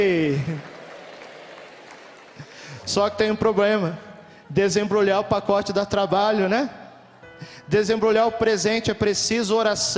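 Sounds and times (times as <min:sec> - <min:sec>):
speech: 0:00.0 - 0:00.7, 0:02.9 - 0:06.8, 0:07.4 - 0:09.9
audience applause: 0:00.0 - 0:03.0.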